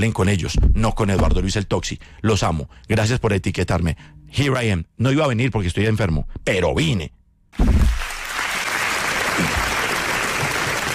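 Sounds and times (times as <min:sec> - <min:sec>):
speech: 0:00.0 - 0:08.0
audience applause: 0:07.9 - 0:10.9.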